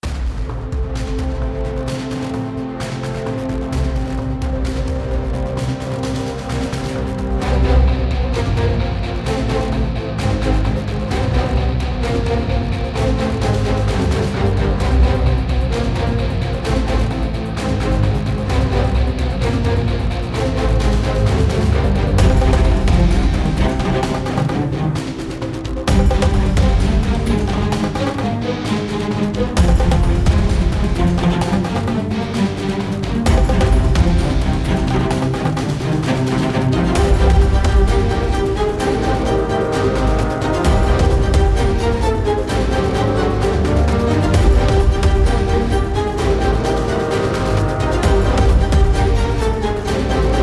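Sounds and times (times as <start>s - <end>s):
background score: 0.0s - 50.4s.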